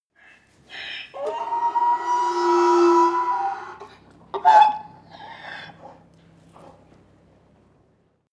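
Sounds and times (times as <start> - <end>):
donkey braying: 0.6 - 6.9.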